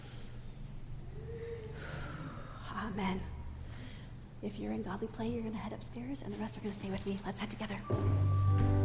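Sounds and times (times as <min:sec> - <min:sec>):
people at a church gathering taking a big deep breath: 0:00.0 - 0:02.8, 0:03.5 - 0:04.4
speech: 0:02.8 - 0:03.4, 0:04.4 - 0:08.7.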